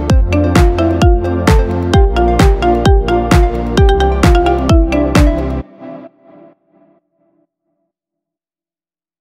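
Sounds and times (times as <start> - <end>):
iPhone marimba ringtone: 0.2 - 5.6.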